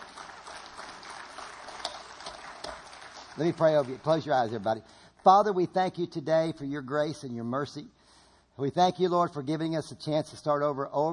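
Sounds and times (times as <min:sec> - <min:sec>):
audience applause: 0:00.0 - 0:04.6
speech: 0:03.4 - 0:08.0, 0:08.6 - 0:11.1.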